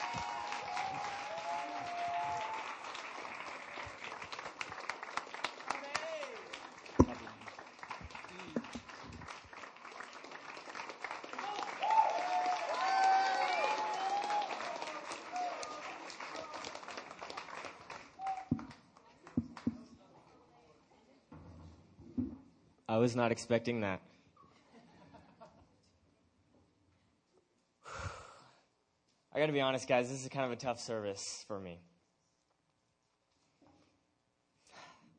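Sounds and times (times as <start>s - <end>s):
standing audience applause: 0.0s - 18.8s
speech: 23.0s - 24.1s, 29.4s - 31.9s.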